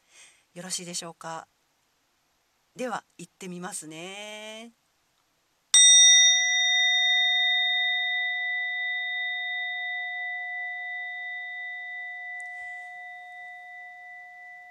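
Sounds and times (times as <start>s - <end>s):
speech: 0.6s - 1.6s, 2.8s - 4.8s
orin Buddhist bell struck and ringing: 5.8s - 14.6s.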